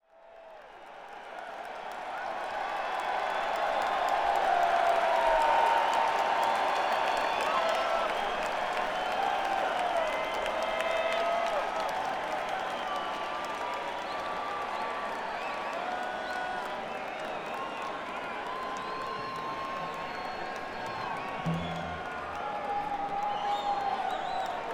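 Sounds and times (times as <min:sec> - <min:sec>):
crowd: 0:00.0 - 0:24.7.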